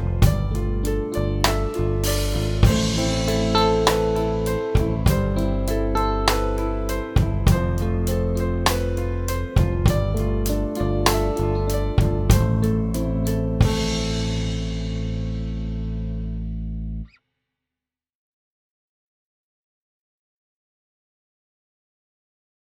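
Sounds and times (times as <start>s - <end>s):
improvised melody on A, G and E: 0.0s - 16.4s.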